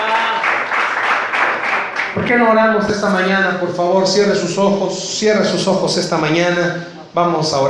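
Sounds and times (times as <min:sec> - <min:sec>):
audience applauding: 0:00.0 - 0:02.4
speech: 0:02.1 - 0:07.6.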